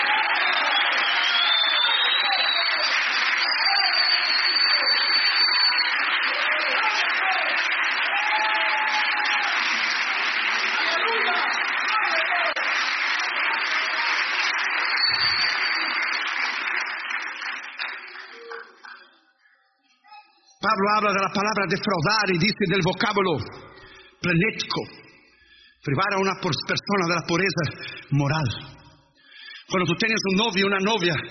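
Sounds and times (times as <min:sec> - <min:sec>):
audience applauding: 0:00.0 - 0:19.2
speech: 0:20.8 - 0:23.6, 0:24.2 - 0:25.0, 0:25.8 - 0:28.6, 0:29.7 - 0:31.2.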